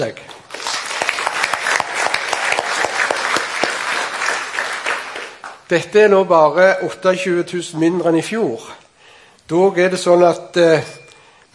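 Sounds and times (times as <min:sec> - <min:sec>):
speech: 0:00.0 - 0:00.6, 0:05.7 - 0:08.8, 0:09.5 - 0:11.5
audience applause: 0:00.4 - 0:05.6.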